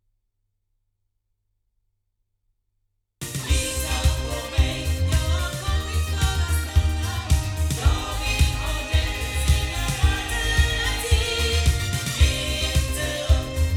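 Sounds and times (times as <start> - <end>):
loudspeakers: 3.3 - 13.7.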